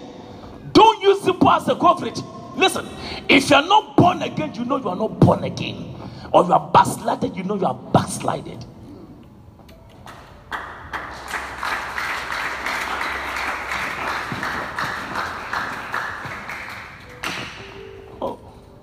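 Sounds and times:
speech: 1.4 - 8.7
audience clapping: 10.0 - 17.8.

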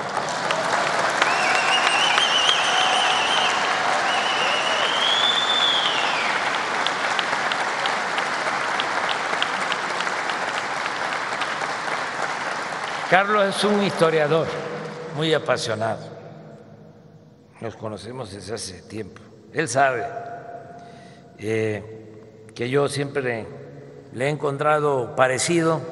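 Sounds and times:
audience applauding: 0.0 - 15.0
high whistles: 1.2 - 6.6
speech: 13.1 - 16.1, 17.6 - 20.3, 21.4 - 22.0, 22.6 - 25.9.

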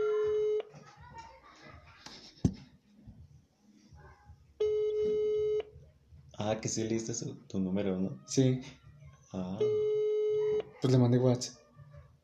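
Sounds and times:
phone call ringing unanswered: 0.0 - 0.7, 4.6 - 5.7, 9.6 - 10.7
speech: 6.4 - 9.9, 10.8 - 11.6.

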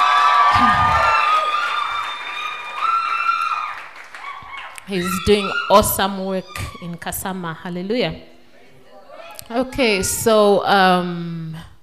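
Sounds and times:
audience applauding and cheering: 0.0 - 6.8
speech: 4.9 - 8.3, 9.5 - 11.7.

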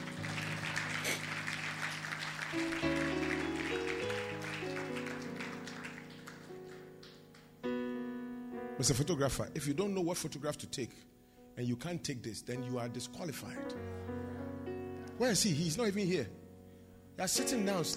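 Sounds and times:
crowd applause: 0.0 - 7.6
sustained keyboard chords: 0.0 - 17.9
speech: 2.5 - 2.9, 8.8 - 14.0, 15.2 - 16.4, 17.2 - 17.9.

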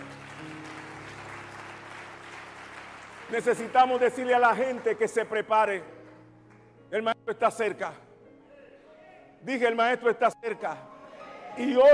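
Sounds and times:
audience clapping: 0.0 - 6.8
speech: 3.3 - 6.0, 6.9 - 8.1, 9.4 - 10.9, 11.6 - 11.9.

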